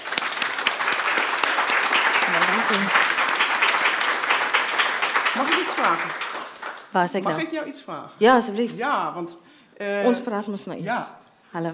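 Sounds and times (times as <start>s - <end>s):
audience applause: 0.0s - 7.0s
speech: 2.7s - 3.1s, 5.4s - 6.3s, 6.9s - 11.7s.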